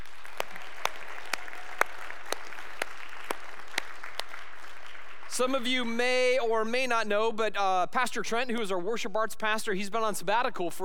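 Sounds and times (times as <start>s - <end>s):
audience applause: 0.0s - 5.4s
speech: 5.4s - 10.8s.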